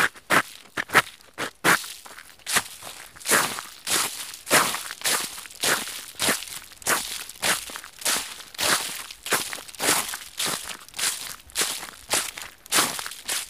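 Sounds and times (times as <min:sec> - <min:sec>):
footsteps crunching on crunchy leaves: 0:01.8 - 0:13.4.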